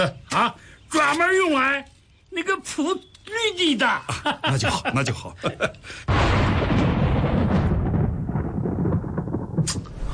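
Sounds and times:
speech: 0.0s - 6.7s
thunder crack and rolling rumble before rain: 6.1s - 10.1s.

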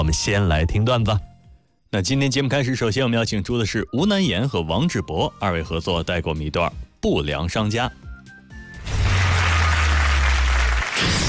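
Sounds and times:
speech: 0.0s - 1.3s, 1.9s - 8.0s
audience applause: 9.0s - 11.2s.

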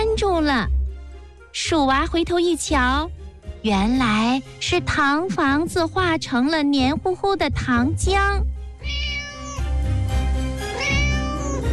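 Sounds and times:
speech: 0.4s - 0.8s, 1.5s - 9.0s
cat meowing: 8.8s - 9.7s, 10.7s - 11.7s.

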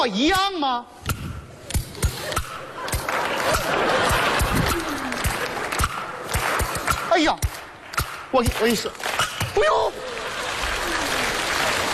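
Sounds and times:
speech: 0.0s - 1.0s, 3.4s - 4.2s, 7.2s - 7.6s, 8.3s - 10.0s
audience laughter: 2.0s - 6.4s, 9.7s - 11.9s
audience applause: 3.0s - 6.6s, 9.8s - 11.9s
person whooping: 10.8s - 11.4s.

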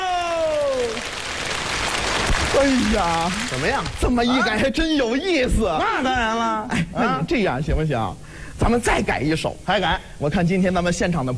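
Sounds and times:
live crosstalk audience applauding and cheering: 0.0s - 4.3s
speech: 2.6s - 11.3s.

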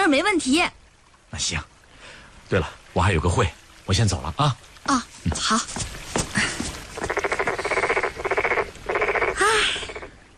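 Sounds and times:
speech: 0.1s - 1.7s, 2.5s - 6.5s
toad croaking noisily: 7.0s - 10.1s.

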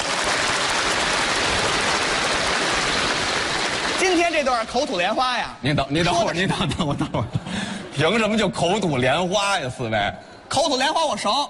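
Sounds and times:
audience applause: 0.0s - 5.0s
speech: 4.4s - 11.4s.

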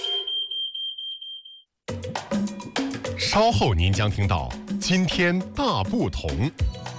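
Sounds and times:
home standalone smoke detector alarm high-pitched electronic tone: 0.0s - 1.7s
speech: 3.2s - 6.8s.

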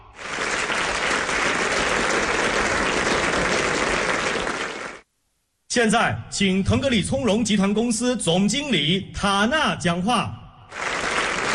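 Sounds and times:
audience applause: 0.0s - 5.0s, 10.7s - 11.5s
speech: 5.8s - 10.8s.

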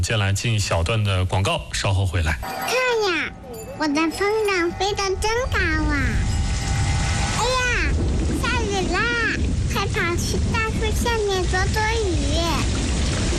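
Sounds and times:
speech: 0.0s - 6.3s, 9.9s - 12.7s
thunder: 5.1s - 13.3s
rain: 5.2s - 13.3s.

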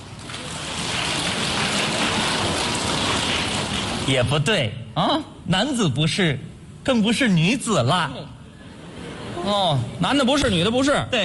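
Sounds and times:
audience applause: 0.3s - 4.1s
speech: 4.1s - 8.4s, 9.4s - 11.2s.

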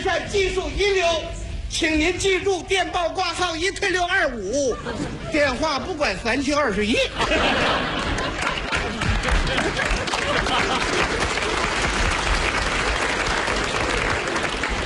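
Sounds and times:
speech: 0.1s - 8.1s
laughter: 4.4s - 5.9s, 6.9s - 12.0s
audience applause: 7.6s - 14.8s.

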